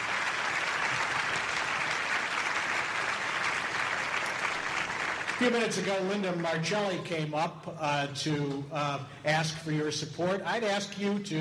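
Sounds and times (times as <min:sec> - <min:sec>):
audience applause: 0:00.0 - 0:06.6
speech: 0:05.4 - 0:11.3.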